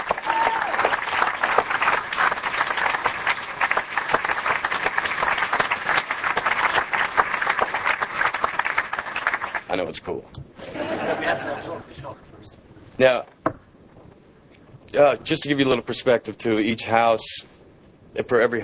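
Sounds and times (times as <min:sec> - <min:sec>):
crowd applauding: 0:00.0 - 0:09.7
speech: 0:09.8 - 0:10.4, 0:11.1 - 0:13.4, 0:14.9 - 0:17.5, 0:18.2 - 0:18.6
laughter: 0:10.6 - 0:12.0.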